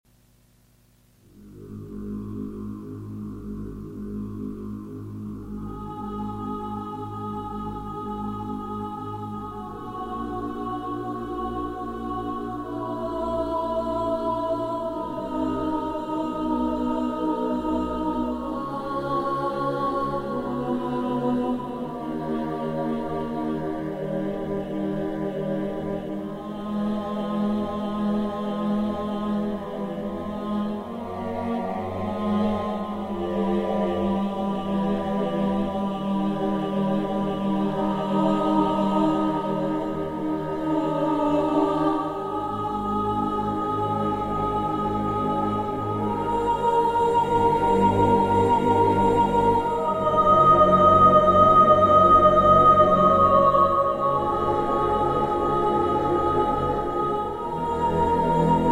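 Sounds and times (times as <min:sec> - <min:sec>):
spooky choral music: 0:01.3 - 0:58.7.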